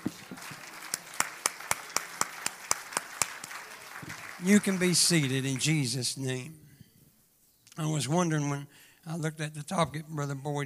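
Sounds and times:
audience clapping: 0.0s - 6.2s
crowd noise: 0.0s - 6.2s
speech: 4.4s - 6.6s, 7.8s - 10.6s.

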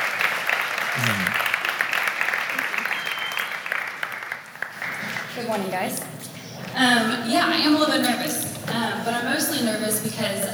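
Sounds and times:
audience applause: 0.0s - 7.8s
speech: 1.0s - 1.5s, 5.4s - 6.2s, 6.8s - 10.5s.

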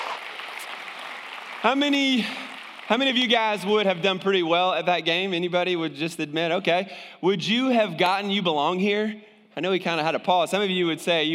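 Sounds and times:
crowd applause: 0.0s - 4.0s
speech: 1.6s - 11.3s.

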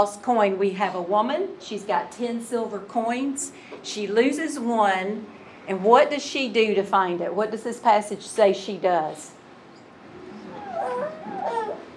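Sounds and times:
speech: 0.0s - 9.4s
baby noises: 10.2s - 11.9s.

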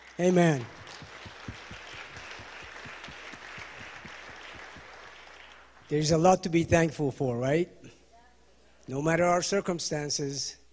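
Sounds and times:
audience clapping: 0.0s - 6.2s
speech: 0.2s - 0.8s, 5.9s - 7.8s, 8.9s - 10.6s.

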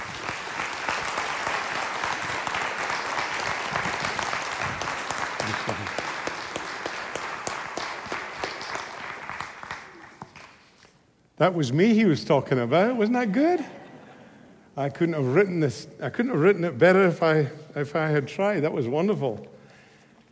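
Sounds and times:
audience applause welcoming a guest speaker at a church gathering: 0.0s - 10.6s
speech: 11.4s - 13.8s, 14.8s - 19.6s.

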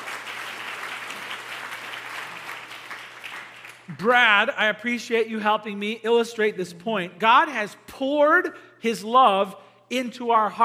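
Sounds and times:
audience applause: 0.0s - 3.9s
speech: 3.9s - 10.6s.

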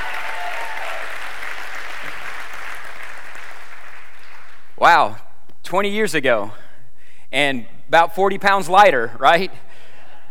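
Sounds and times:
audience applause, hand clapping: 0.0s - 4.8s
speech: 4.8s - 6.6s, 7.3s - 9.7s.

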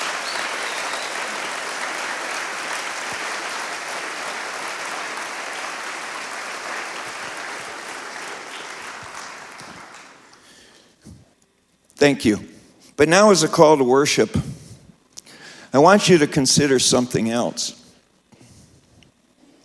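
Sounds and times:
audience applause: 0.0s - 10.7s
speech: 12.0s - 14.5s, 15.7s - 17.8s.

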